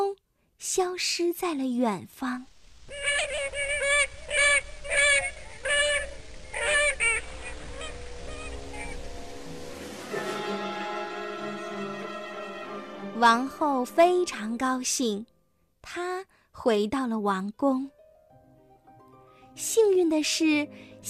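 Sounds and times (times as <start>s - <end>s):
speech: 0.6s - 3.7s, 13.2s - 18.0s, 19.6s - 21.0s
swans honking: 2.9s - 14.5s
steady sustained tone: 3.4s - 14.8s.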